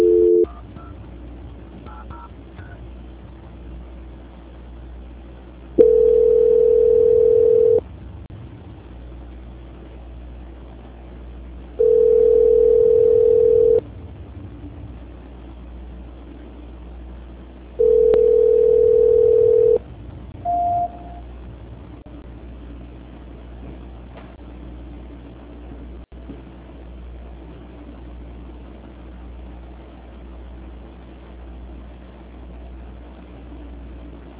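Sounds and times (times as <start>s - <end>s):
telephone line tone during a call transfer: 0.0s - 1.0s, 5.8s - 7.8s, 11.8s - 13.8s, 17.8s - 19.8s, 20.5s - 21.2s.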